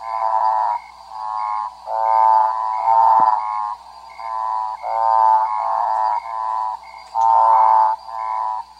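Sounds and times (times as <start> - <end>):
common lesser escuerzo croaking: 0.0 - 8.7.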